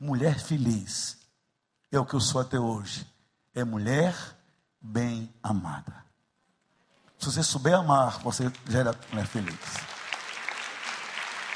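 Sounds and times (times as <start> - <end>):
speech: 0.0 - 1.2, 1.9 - 6.0, 7.2 - 9.9
audience applause: 8.0 - 11.5.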